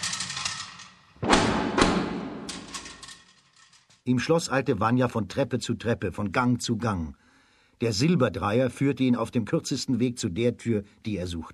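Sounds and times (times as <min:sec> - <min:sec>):
iron gate rattling: 0:00.0 - 0:03.9
iron gate slamming shut: 0:01.2 - 0:03.2
speech: 0:04.0 - 0:11.5.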